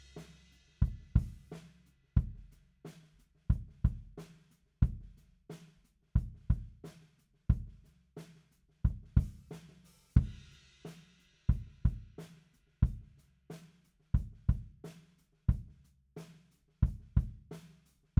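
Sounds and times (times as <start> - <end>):
bass drum: 0.0 - 1.6, 2.2 - 2.6, 3.5 - 4.2, 4.8 - 5.2, 6.2 - 6.9, 7.5 - 7.9, 8.9 - 10.6, 12.8 - 13.2, 14.2 - 14.8, 15.5 - 15.8, 16.8 - 17.6.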